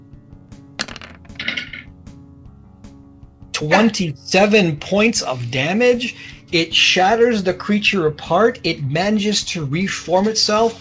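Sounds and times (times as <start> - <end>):
several dice rolling across a hard surface: 0.8 - 1.9
speech: 3.6 - 10.7.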